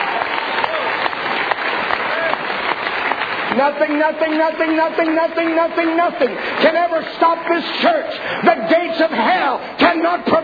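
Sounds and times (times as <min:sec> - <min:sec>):
audience clapping: 0:00.0 - 0:08.9
speech: 0:03.6 - 0:10.4.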